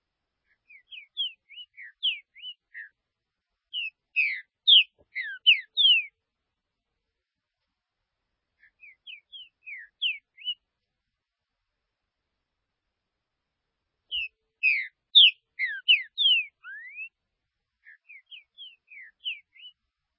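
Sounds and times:
green-winged saltator song of whistled slurred notes: 0.6s - 3.0s, 3.7s - 6.2s, 8.6s - 10.6s, 14.1s - 17.2s, 17.8s - 19.8s.

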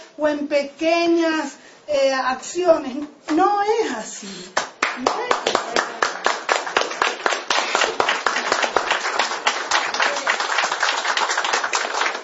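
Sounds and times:
speech: 0.2s - 6.0s
audience applause: 4.8s - 12.2s.

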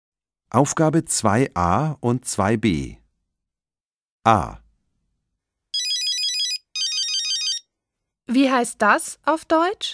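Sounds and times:
speech: 0.5s - 3.0s, 4.2s - 4.6s, 8.3s - 9.9s
mobile phone ringing: 5.8s - 7.7s.

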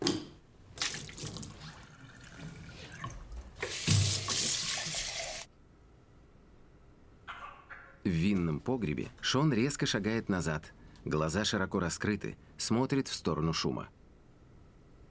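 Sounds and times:
wine spat into a sink: 0.8s - 5.3s
speech: 8.1s - 14.0s.

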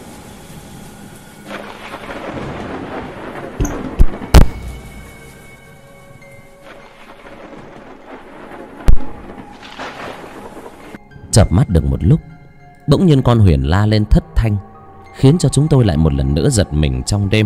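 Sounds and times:
rain: 0.0s - 11.0s
thunder rumbling: 0.0s - 12.3s
wind: 0.0s - 17.4s
speech: 11.4s - 12.3s, 12.9s - 17.4s.

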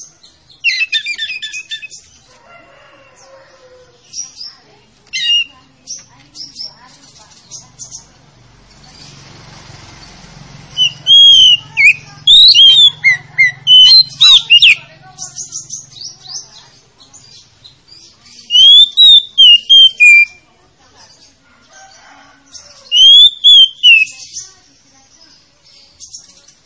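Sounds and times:
faint background chatter: 0.0s - 26.6s
Oriental magpie-robin whistling: 0.5s - 2.1s, 5.1s - 5.6s, 10.7s - 14.9s, 18.5s - 20.4s, 22.8s - 24.4s.

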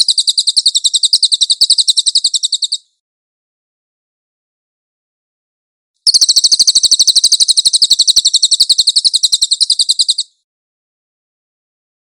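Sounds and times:
cililin bird singing shrill trill: 0.0s - 3.0s, 6.0s - 10.4s.

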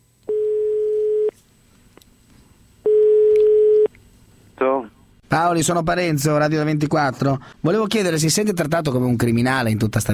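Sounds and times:
telephone ringing tone on the line during a radio call: 0.3s - 1.3s, 2.9s - 3.9s
speech: 4.7s - 10.1s.

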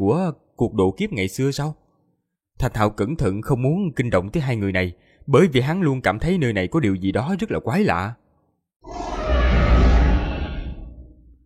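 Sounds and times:
speech: 0.0s - 1.8s, 2.6s - 8.2s
deep low roar: 8.8s - 11.2s.

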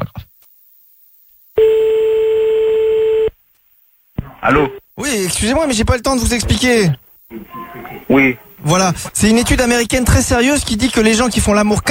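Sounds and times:
steady telephone tone as a call is placed: 1.6s - 3.4s
speech: 4.4s - 7.5s, 8.1s - 11.8s.

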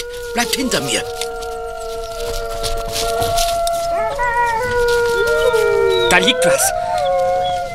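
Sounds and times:
several wolves howling played from cassette recorder: 0.0s - 7.7s
speech: 0.4s - 1.2s, 3.0s - 3.6s, 6.1s - 6.8s.

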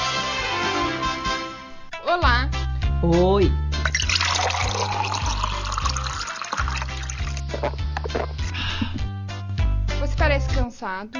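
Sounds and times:
music with stepping bass line: 0.0s - 11.1s
water being poured into a glass: 3.8s - 8.4s
speech: 10.8s - 11.1s.

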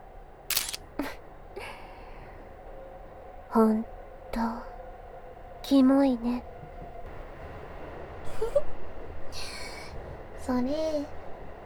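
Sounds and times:
faint noise: 0.0s - 11.6s
camera shutter clicks in a train's saloon car: 0.5s - 0.8s
speech: 3.6s - 4.7s, 5.7s - 6.5s, 10.5s - 11.2s.

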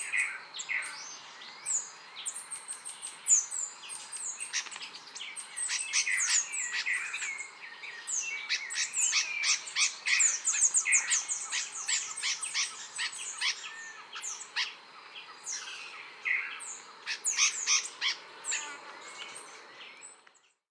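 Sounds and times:
songbird high squeaky chirps and thin slurred whistles: 0.0s - 20.6s.

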